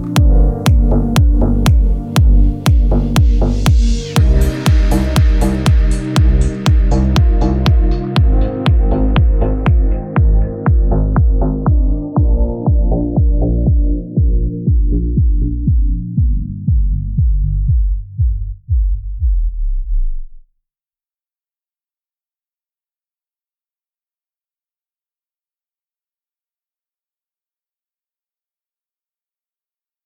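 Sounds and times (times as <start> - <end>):
deep house remix: 0.0 - 20.4.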